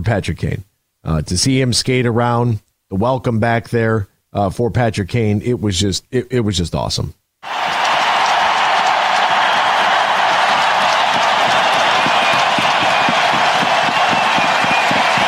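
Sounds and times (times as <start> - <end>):
speech: 0.0 - 7.6
arena crowd cheering: 7.4 - 15.2.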